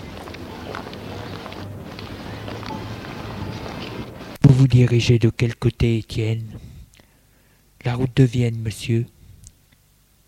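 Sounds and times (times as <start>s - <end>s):
street noise: 0.0s - 6.0s
speech: 4.6s - 6.7s, 7.8s - 9.1s.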